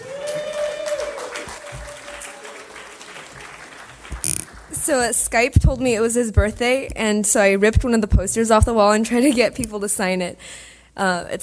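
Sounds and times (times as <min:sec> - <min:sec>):
crowd applause: 0:00.0 - 0:05.2
speech: 0:04.9 - 0:11.4.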